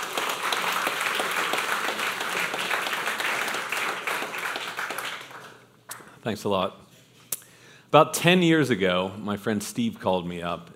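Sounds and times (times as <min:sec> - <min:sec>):
audience applause: 0:00.0 - 0:05.7
speech: 0:06.2 - 0:06.8, 0:07.9 - 0:10.7.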